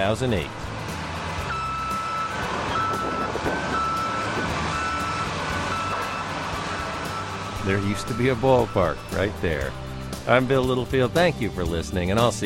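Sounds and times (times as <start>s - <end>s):
speech: 0.0s - 0.6s, 7.6s - 12.4s
demolition machinery tearing down a stadium: 0.0s - 11.4s
high reversing beep: 1.5s - 9.7s.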